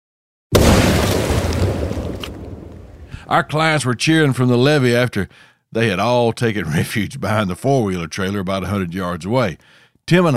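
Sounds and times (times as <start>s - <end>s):
explosive detonation boom on ice: 0.5s - 3.3s
speech: 3.3s - 10.3s.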